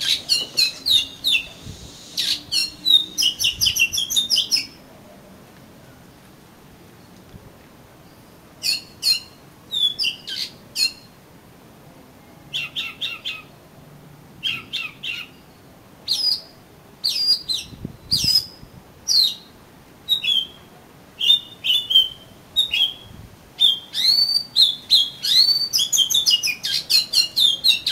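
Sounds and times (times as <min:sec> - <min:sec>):
oriental magpie-robin singing: 0:00.0 - 0:04.8, 0:08.6 - 0:11.2, 0:12.5 - 0:13.6, 0:14.4 - 0:19.5, 0:20.1 - 0:27.9.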